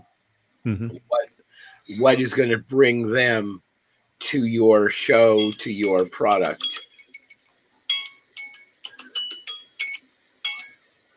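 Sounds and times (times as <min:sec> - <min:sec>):
speech: 0:00.6 - 0:03.6, 0:04.2 - 0:06.8
timer chiming a piano-like tune: 0:05.3 - 0:06.8, 0:07.9 - 0:10.8.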